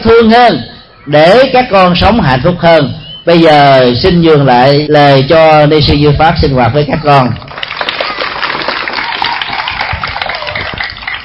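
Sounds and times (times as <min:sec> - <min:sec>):
speech: 0:00.0 - 0:07.6
audience of children clapping hands at a Buddhist gathering: 0:07.4 - 0:11.2.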